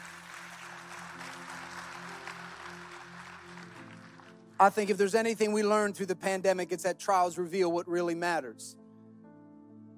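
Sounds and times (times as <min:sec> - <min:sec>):
audience clapping hands: 0:00.0 - 0:05.1
speech: 0:04.6 - 0:08.8.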